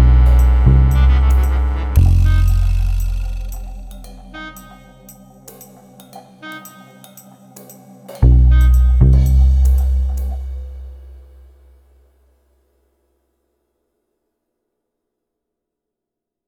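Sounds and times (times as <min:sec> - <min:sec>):
sad trombone: 0:00.0 - 0:05.3, 0:08.2 - 0:10.8.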